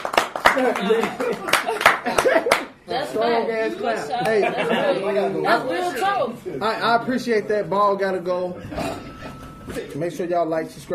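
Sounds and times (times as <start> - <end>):
hands clapping: 0.0 - 2.8, 4.2 - 4.4
laughter: 0.5 - 2.8, 4.1 - 5.5
speech: 0.6 - 9.1, 9.7 - 10.9.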